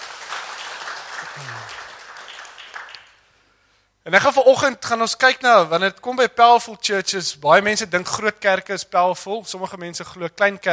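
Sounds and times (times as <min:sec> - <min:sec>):
audience clapping hands: 0:00.0 - 0:03.3
speech: 0:01.4 - 0:01.8, 0:04.0 - 0:10.7.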